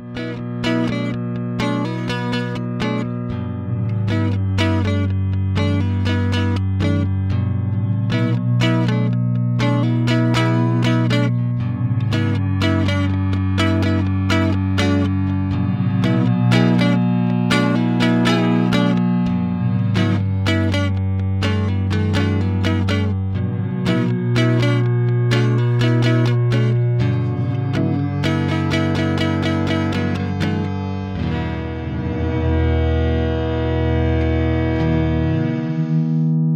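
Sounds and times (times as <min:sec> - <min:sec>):
Superego momentary mode glissando: 0:00.2 - 0:36.4.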